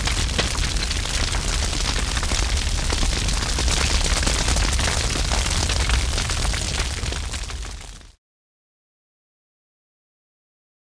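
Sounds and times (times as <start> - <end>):
big fire burning close: 0.0 - 8.2.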